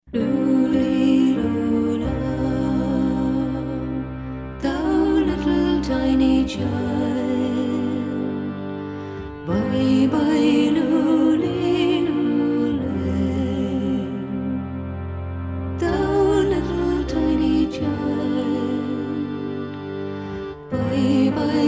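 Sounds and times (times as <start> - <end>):
Celtic Christmas music: 0.0 - 21.6.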